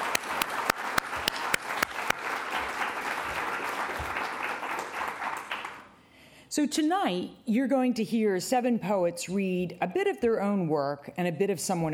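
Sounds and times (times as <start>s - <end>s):
audience applause: 0.0s - 5.9s
speech: 6.6s - 11.9s.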